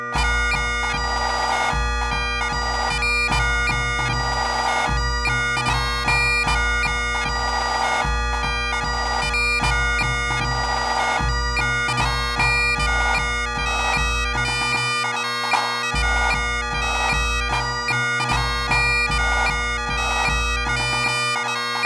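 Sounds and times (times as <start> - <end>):
snare drummers playing a pipe band score: 0.1 - 21.8.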